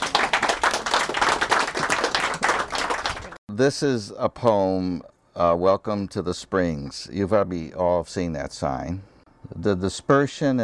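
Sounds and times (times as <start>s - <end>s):
audience applause welcoming a poet: 0.0s - 3.4s
speech: 3.5s - 10.6s.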